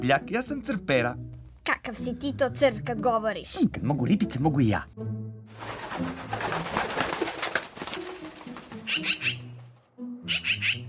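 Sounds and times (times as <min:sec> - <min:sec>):
speech: 0:00.0 - 0:06.8, 0:08.9 - 0:09.4
magpie calls: 0:08.8 - 0:09.6, 0:10.2 - 0:10.8.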